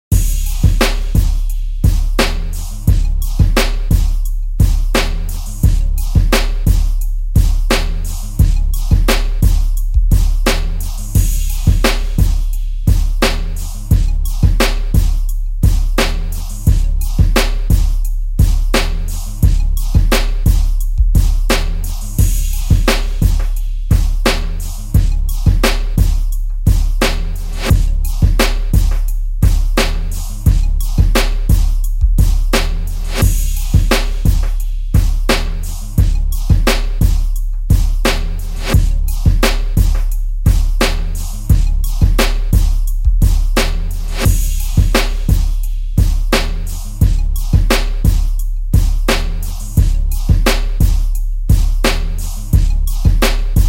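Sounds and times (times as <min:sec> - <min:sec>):
independent beats at 87 bpm: 0:00.1 - 0:53.6.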